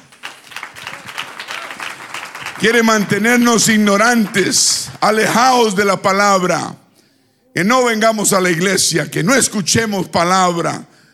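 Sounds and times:
audience applause: 0.0 - 5.0
speech: 2.6 - 6.8, 7.6 - 11.0.

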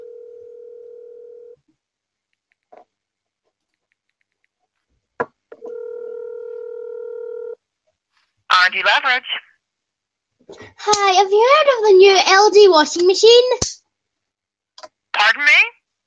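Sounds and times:
faint clicks: 3.6 - 4.6
telephone dialing and ringing with steady electronic phone tone: 5.6 - 7.6
speech: 8.7 - 9.4, 10.5 - 13.7.

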